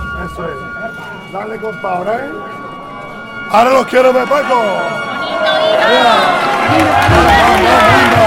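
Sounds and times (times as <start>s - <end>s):
speech: 0.4s - 2.7s, 3.5s - 8.2s
crowd cheering and shouting encouragement: 3.8s - 8.2s.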